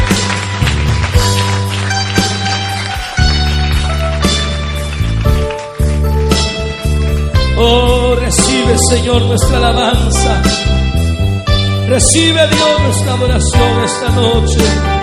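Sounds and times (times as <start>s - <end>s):
audience clapping: 0.0s - 8.5s
loud sustained music with held chords and low bass notes: 0.0s - 15.0s
speech: 7.6s - 11.0s, 11.9s - 15.0s.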